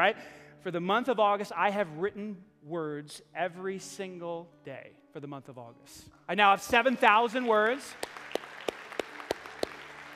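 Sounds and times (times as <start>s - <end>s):
speech: 0.0s - 8.2s
audience clapping: 6.6s - 10.1s.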